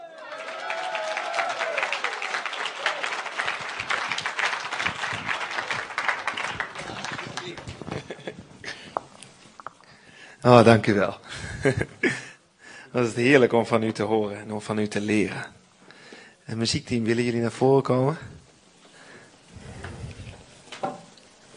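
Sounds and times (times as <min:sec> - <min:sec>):
audience applause: 0:00.0 - 0:08.3
laughter: 0:04.8 - 0:08.9
speech: 0:10.4 - 0:12.2, 0:13.0 - 0:15.6, 0:16.5 - 0:18.3.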